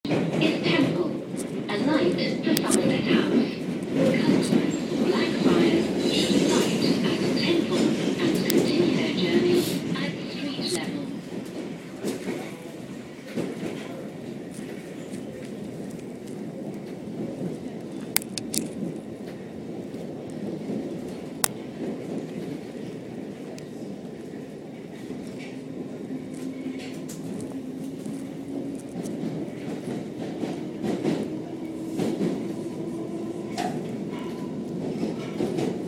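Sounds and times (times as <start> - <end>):
train: 0.0 - 35.8.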